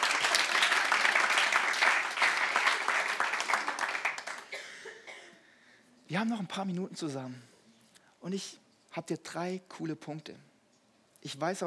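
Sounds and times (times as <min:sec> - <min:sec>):
audience applause: 0:00.0 - 0:04.6
speech: 0:06.1 - 0:07.5, 0:08.2 - 0:10.5, 0:11.2 - 0:11.6.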